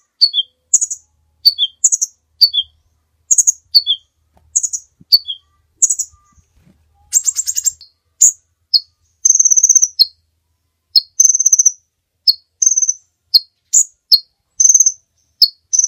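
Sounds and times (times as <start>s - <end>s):
bird giving buzzy chattering bursts: 0.0s - 10.2s, 11.0s - 15.8s.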